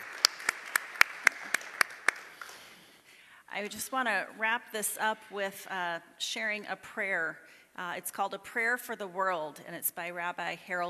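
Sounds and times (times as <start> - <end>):
audience applause: 0.0 - 2.7
speech: 3.6 - 10.8.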